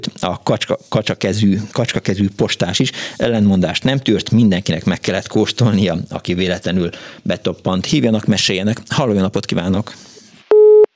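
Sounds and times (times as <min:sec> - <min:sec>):
speech: 0:00.0 - 0:10.1
telephone busy tone after call drops: 0:10.5 - 0:10.9.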